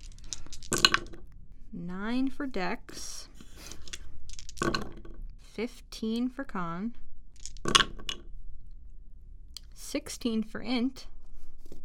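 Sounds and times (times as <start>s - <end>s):
dice clattering: 0.0s - 1.4s, 2.2s - 5.5s, 7.2s - 8.4s
speech: 1.8s - 3.0s, 5.6s - 7.0s, 9.9s - 11.1s.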